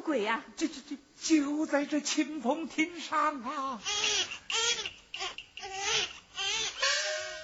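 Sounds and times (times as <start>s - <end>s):
speech: 0.1s - 4.7s
baby crying: 3.8s - 7.4s.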